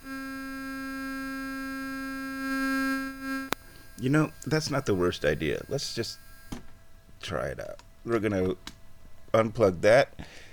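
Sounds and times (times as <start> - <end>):
Monk synthesizer module producing a steady electronic tone: 0.0 - 6.5
speech: 4.0 - 6.3, 7.2 - 8.7, 9.3 - 10.4.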